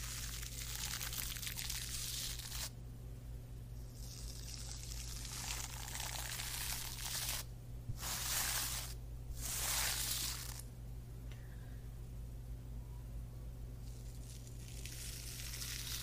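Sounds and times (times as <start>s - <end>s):
scalp massage rustling: 0.0s - 2.7s, 4.1s - 10.7s, 13.9s - 16.0s
steady low hum: 1.9s - 16.0s.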